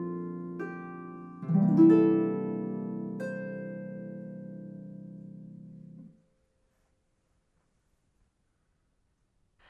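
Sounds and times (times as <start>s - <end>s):
harp: 0.0s - 6.2s.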